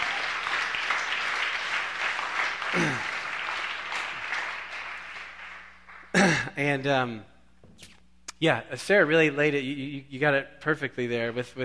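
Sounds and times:
crowd applauding: 0.0s - 6.4s
speech: 6.2s - 7.3s, 8.4s - 11.6s.

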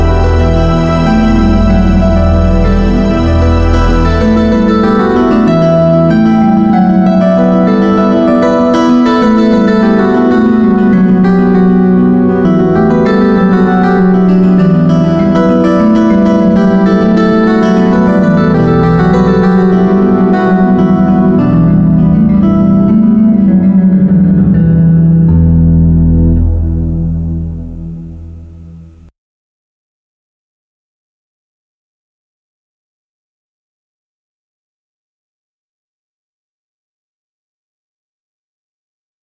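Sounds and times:
synth instrumental: 0.0s - 29.1s.

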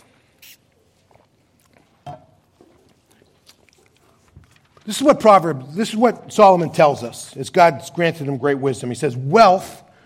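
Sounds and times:
person sipping water: 0.0s - 4.7s
speech: 4.8s - 9.8s.

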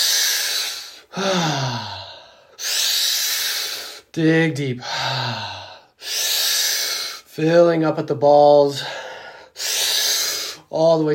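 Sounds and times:
deep forceful breathing during a guided breathwork exercise: 0.0s - 4.2s, 4.8s - 7.3s, 8.6s - 10.7s
falling voiced moan: 1.1s - 2.2s
speech: 1.2s - 2.0s, 4.2s - 6.2s, 7.4s - 9.0s, 10.7s - 11.1s.

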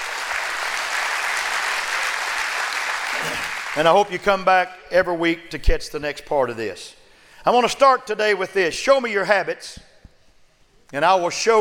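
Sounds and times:
audience hand clapping: 0.0s - 4.0s
speech: 3.3s - 9.9s, 10.9s - 11.6s.

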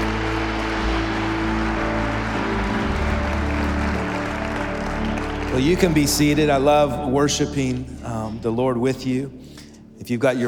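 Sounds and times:
audience hand clapping: 0.0s - 6.9s
speech: 5.5s - 10.4s.

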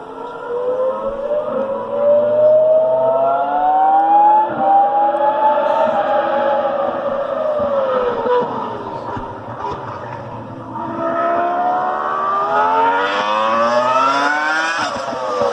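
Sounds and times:
Ferrari V10 race car engine going around the course: 0.0s - 15.5s.

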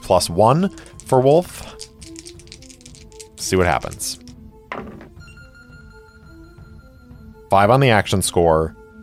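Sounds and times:
speech: 0.1s - 1.9s, 3.4s - 4.2s, 7.5s - 8.8s
dice being rolled: 0.6s - 5.1s.

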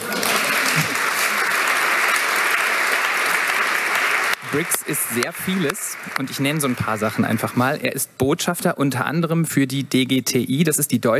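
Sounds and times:
audience applause: 0.0s - 7.8s
speech: 4.5s - 11.1s.

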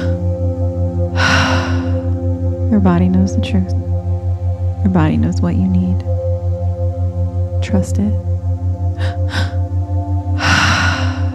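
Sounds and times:
person breathing during a guided breathing exercise: 0.0s - 0.3s, 1.2s - 2.2s, 9.0s - 9.6s, 10.4s - 11.3s
pulsing low beat: 0.0s - 11.3s
speech: 2.8s - 3.9s, 4.8s - 6.1s, 7.6s - 8.3s.

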